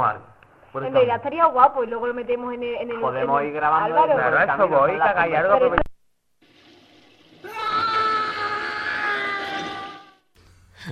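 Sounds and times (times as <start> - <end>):
speech: 0.0 - 5.9
woman screaming in the studio: 7.4 - 10.3.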